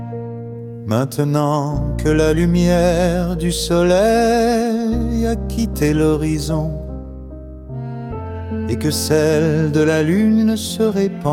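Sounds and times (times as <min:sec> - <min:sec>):
man singing a lullaby: 0:00.9 - 0:06.9, 0:08.7 - 0:11.3.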